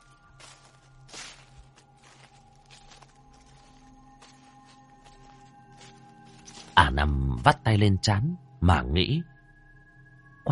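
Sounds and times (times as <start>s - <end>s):
shuffling footsteps: 0.0s - 6.9s
speech: 7.0s - 9.3s.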